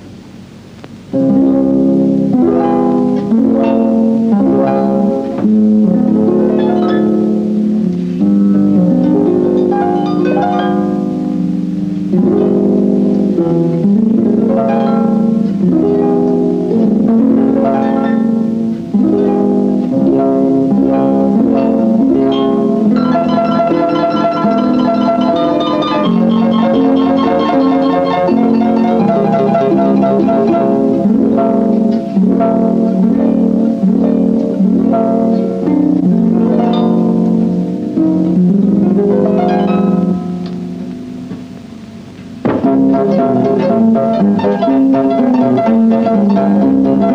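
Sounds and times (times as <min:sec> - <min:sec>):
string bed: 0:01.1 - 0:47.1.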